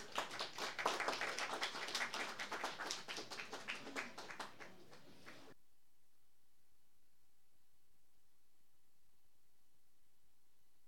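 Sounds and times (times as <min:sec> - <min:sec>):
audience applause welcoming musicians: 0:00.0 - 0:05.6.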